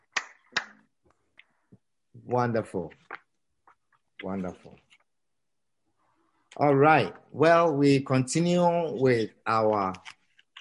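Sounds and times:
audience clapping hands: 0.0 - 0.8
speech: 2.3 - 3.0, 4.2 - 4.8, 6.6 - 10.6.

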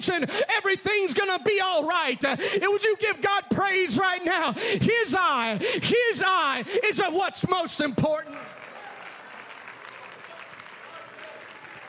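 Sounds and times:
speech: 0.0 - 8.7
audience clapping: 7.4 - 11.8.

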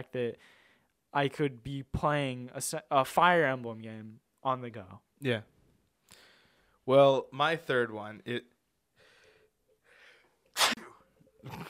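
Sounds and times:
speech: 0.0 - 5.5, 6.9 - 8.5, 11.4 - 11.6
soft breathy inhale: 0.4 - 0.9, 6.1 - 6.8, 9.0 - 10.4
loud abrupt sneeze: 10.6 - 11.6.

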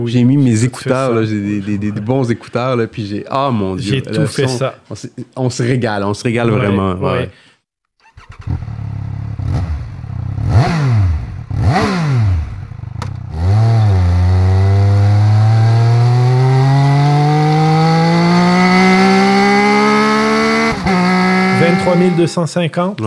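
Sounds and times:
speech: 0.0 - 7.5, 8.4 - 8.8, 21.8 - 23.0
three-cylinder motorcycle engine revving: 8.1 - 22.3.

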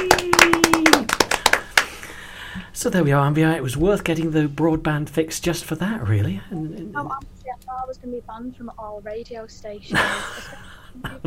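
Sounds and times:
person cheering: 0.0 - 1.2
small group clapping on a radio show: 0.0 - 2.2
speech: 2.8 - 11.2
laughter: 9.9 - 11.2.

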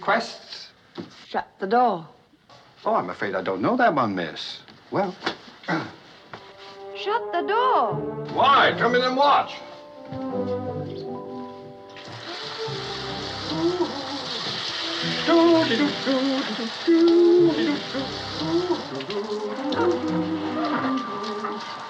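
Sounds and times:
speech: 0.1 - 2.2, 2.8 - 6.0, 7.0 - 10.7, 15.3 - 20.2
shower water running: 11.8 - 21.8.

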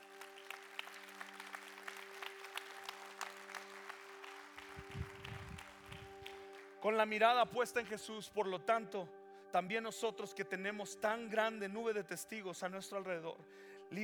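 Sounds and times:
audience applause in a large hall: 0.0 - 6.8
speech: 6.8 - 14.0.

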